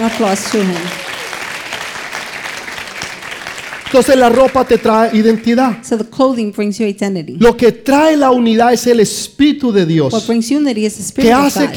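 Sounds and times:
speech: 0.0 - 1.0, 3.9 - 11.7
loud audience applause: 0.0 - 5.6.

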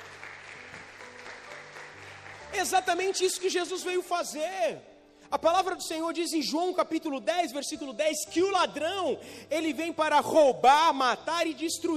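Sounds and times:
audience applauding: 0.0 - 3.3
speech: 2.6 - 11.9.

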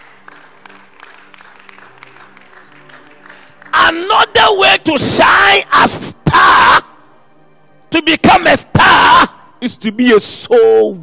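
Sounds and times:
audience clapping: 0.0 - 4.1
speech: 4.2 - 6.6, 8.0 - 11.0.

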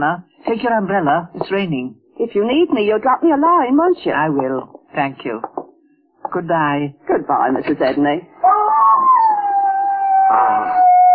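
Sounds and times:
speech: 0.0 - 5.5, 6.3 - 8.3
dog howling: 8.4 - 11.1.

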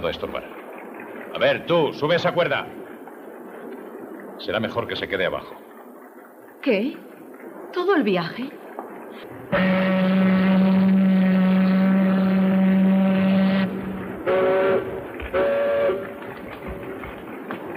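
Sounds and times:
speech: 0.0 - 0.6, 1.4 - 2.8, 4.4 - 5.6, 6.6 - 7.1, 7.7 - 10.3
low rumble: 0.0 - 17.7
ship horn blasts at departure: 9.5 - 17.0.

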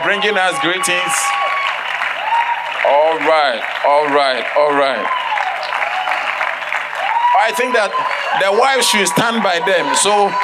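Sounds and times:
speech: 0.0 - 1.6, 2.8 - 5.2, 7.4 - 10.4
audience applauding visiting pastors at a church gathering: 0.0 - 10.4.

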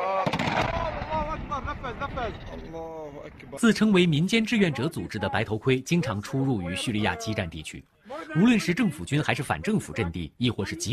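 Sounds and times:
huge explosion: 0.2 - 3.8
speech: 1.9 - 10.9.

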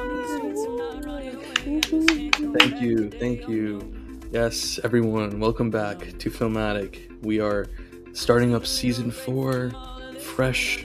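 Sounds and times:
voices imitating a cheering crowd with whoops: 0.0 - 3.0
sharp claps: 1.5 - 2.9
speech: 1.8 - 10.8.

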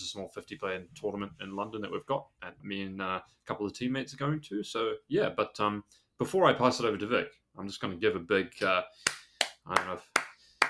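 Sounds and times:
speech: 0.1 - 10.2
hand claps of approval: 8.6 - 10.6.

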